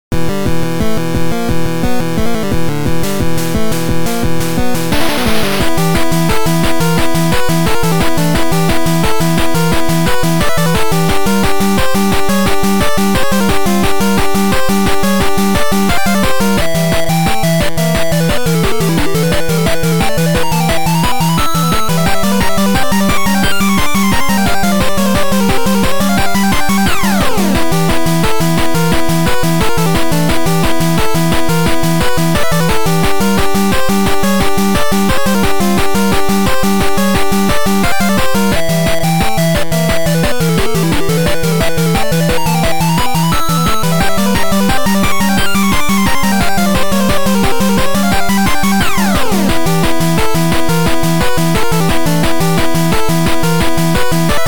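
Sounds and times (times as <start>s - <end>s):
8-bit boss music: 0.1s - 54.4s.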